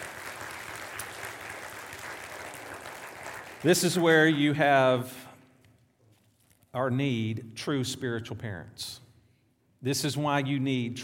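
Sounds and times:
church audience hand clapping: 0:00.0 - 0:04.4
speech: 0:03.6 - 0:05.2, 0:06.8 - 0:09.0, 0:09.8 - 0:11.0.

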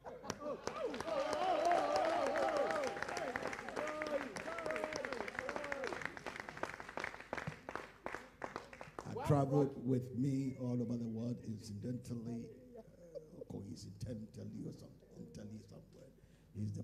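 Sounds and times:
audience clapping: 0:00.0 - 0:09.5
speech: 0:09.3 - 0:12.6, 0:13.7 - 0:16.8.

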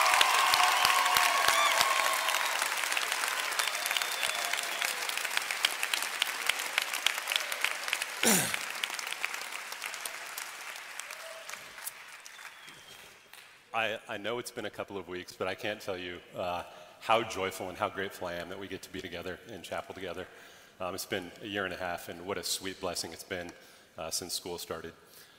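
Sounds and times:
people cheering: 0:00.0 - 0:13.1
chapel audience applauding a doctor: 0:00.0 - 0:13.7
speech: 0:13.8 - 0:25.0.

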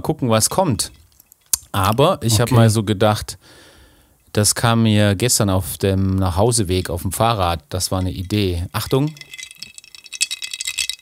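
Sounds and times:
speech: 0:00.0 - 0:01.0, 0:01.7 - 0:03.7, 0:04.3 - 0:09.4
ice cubes rattling in a glass: 0:08.0 - 0:11.0.

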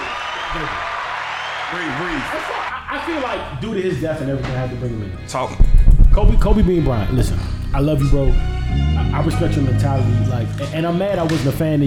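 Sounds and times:
applause: 0:00.0 - 0:02.7
speech: 0:00.5 - 0:00.9, 0:01.7 - 0:11.8.

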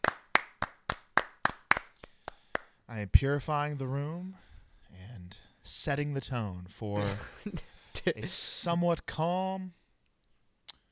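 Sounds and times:
round of applause, hand clapping: 0:00.0 - 0:02.8
speech: 0:02.9 - 0:04.5, 0:05.3 - 0:09.8.

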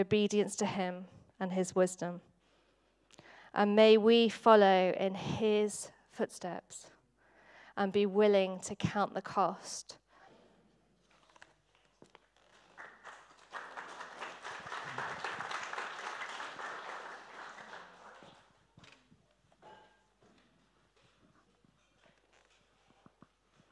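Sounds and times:
speech: 0:00.0 - 0:02.3, 0:03.1 - 0:06.9, 0:07.8 - 0:10.0
hesitant clapping from audience: 0:12.4 - 0:18.6.

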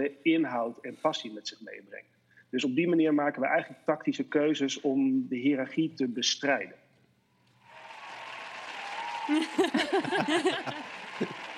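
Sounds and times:
speech: 0:00.0 - 0:06.8, 0:09.3 - 0:11.4
applause: 0:07.6 - 0:11.5
laughter: 0:09.3 - 0:11.5.

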